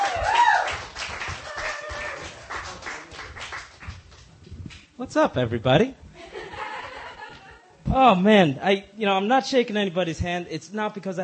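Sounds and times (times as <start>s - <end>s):
audience applause: 0.0s - 4.1s
speech: 5.0s - 6.0s, 7.9s - 11.2s
laughter: 6.2s - 7.7s.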